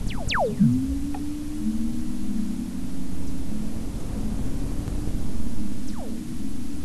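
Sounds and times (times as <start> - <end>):
EMFISIS waveform receiver audio: 0.1 - 4.2, 5.1 - 6.8.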